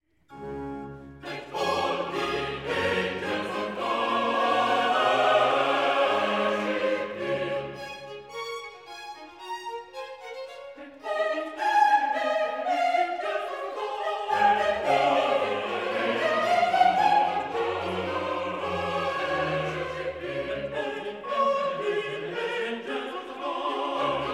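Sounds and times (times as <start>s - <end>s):
choir singing a chorus: 0.3s - 9.5s, 10.2s - 24.3s.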